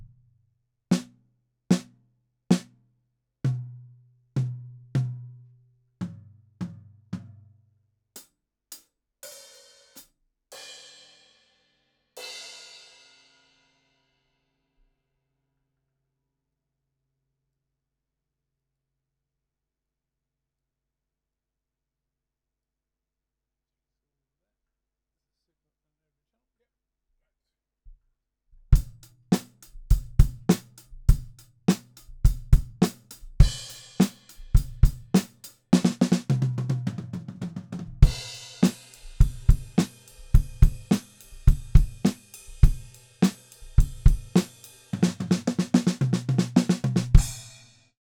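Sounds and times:
dry full drum kit: 0.9 - 1.2, 1.7 - 1.9, 8.2 - 10.9, 28.8 - 47.8.

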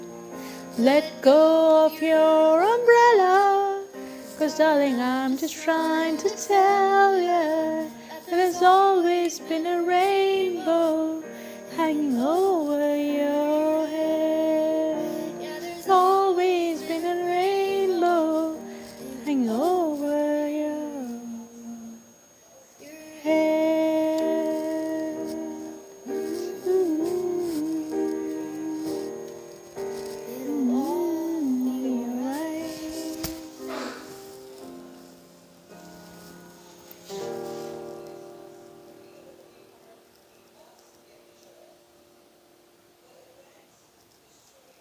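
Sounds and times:
person singing: 0.0 - 35.1.

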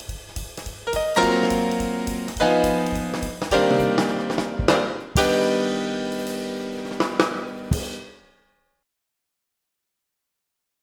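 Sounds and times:
blues in C minor for bass auditions: 0.0 - 8.3.

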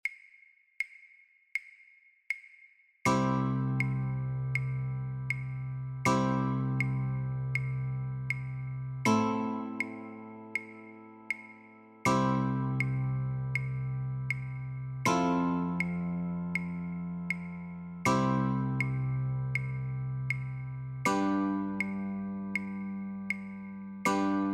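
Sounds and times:
guitar chords: 3.1 - 24.5.

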